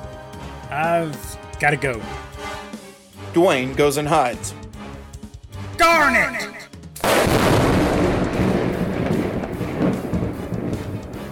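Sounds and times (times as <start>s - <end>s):
speech: 0.7s - 2.3s, 3.4s - 4.6s, 5.8s - 6.6s
lightning strike: 7.0s - 11.3s.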